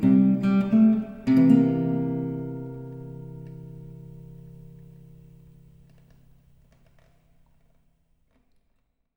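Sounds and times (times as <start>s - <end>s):
blues song: 0.0s - 5.8s.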